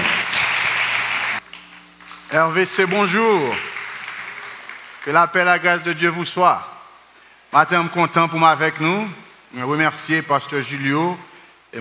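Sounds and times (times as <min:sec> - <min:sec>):
audience applause: 0:00.0 - 0:05.5
faint low hum: 0:01.4 - 0:07.1
speech: 0:02.3 - 0:03.7, 0:05.0 - 0:06.7, 0:07.5 - 0:11.7.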